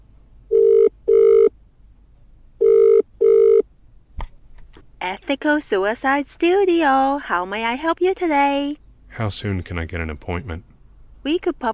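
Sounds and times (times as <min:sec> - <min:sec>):
telephone ringback tone on an outgoing call: 0:00.5 - 0:01.5, 0:02.6 - 0:03.6
speech: 0:05.1 - 0:11.7.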